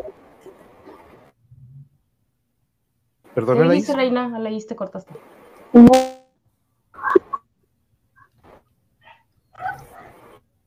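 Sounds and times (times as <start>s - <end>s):
speech: 3.4s - 6.0s
dog barking: 9.0s - 10.2s.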